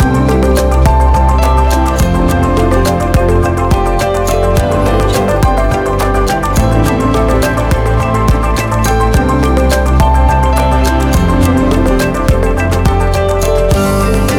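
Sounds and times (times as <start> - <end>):
ambient documentary music: 0.0 - 14.3.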